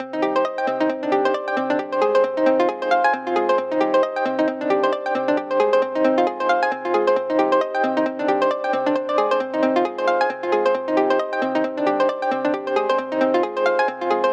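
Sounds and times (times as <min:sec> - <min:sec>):
arpeggio: 0:00.1 - 0:14.3.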